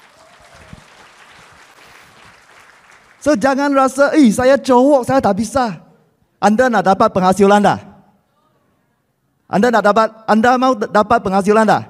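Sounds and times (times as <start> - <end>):
audience applause: 0.0 - 3.3
speech: 3.2 - 5.8, 6.4 - 7.9, 9.5 - 11.8.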